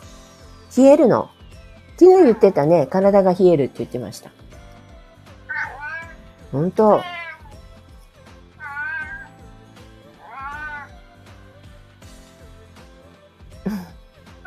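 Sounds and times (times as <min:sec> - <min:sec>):
speech: 0:00.7 - 0:01.4, 0:02.0 - 0:04.4, 0:06.5 - 0:07.2
pet cat Futa meowing in complaint: 0:05.5 - 0:06.2, 0:06.8 - 0:07.6, 0:08.6 - 0:09.4, 0:10.1 - 0:11.0.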